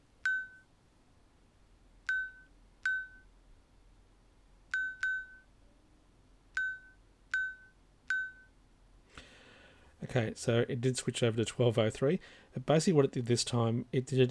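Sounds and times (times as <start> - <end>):
faint low hiss: 0.0 - 14.3
smartwatch beeps buzzing the time: 0.2 - 0.6, 2.1 - 3.2, 4.7 - 5.5, 6.6 - 8.5
speech: 10.1 - 14.3.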